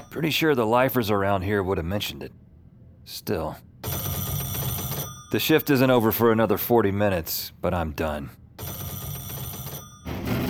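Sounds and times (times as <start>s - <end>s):
telephone ringing: 0.0s - 0.5s, 3.8s - 6.3s, 8.6s - 10.4s
speech: 0.2s - 2.4s, 3.1s - 4.0s, 5.3s - 8.4s.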